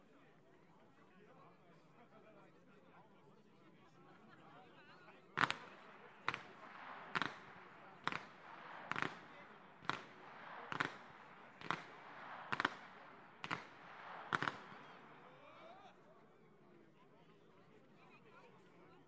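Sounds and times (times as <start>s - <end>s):
whip cracking in Flachgau: 5.4s - 15.1s.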